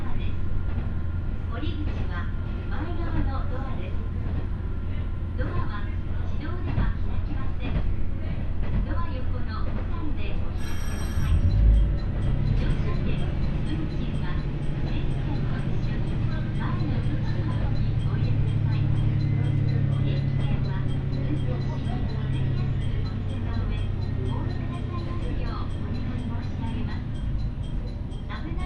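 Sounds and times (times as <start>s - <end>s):
people speaking on the train: 0.0s - 0.4s, 1.5s - 28.6s
Ibara Railway train rumbling between Bitchu-Kuresei and Soun-no-sato Ebara: 0.0s - 28.6s
short high chime: 10.6s - 11.7s
deeper train engine drone: 10.6s - 28.6s.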